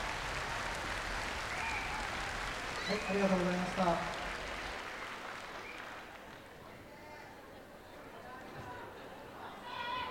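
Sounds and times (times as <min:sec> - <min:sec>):
applause: 0:00.0 - 0:06.8
speech: 0:02.9 - 0:04.2.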